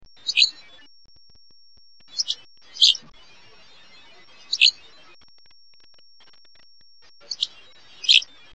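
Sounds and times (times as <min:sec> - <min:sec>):
Hammond's Flycatcher: 0:00.1 - 0:00.8, 0:02.1 - 0:03.1, 0:04.3 - 0:04.9, 0:07.2 - 0:08.4.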